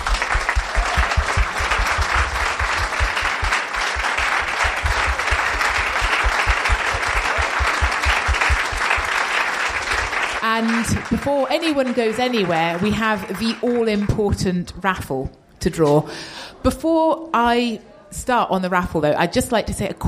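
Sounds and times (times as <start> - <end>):
audience round of applause: 0.0 - 13.8
speech: 10.6 - 20.0.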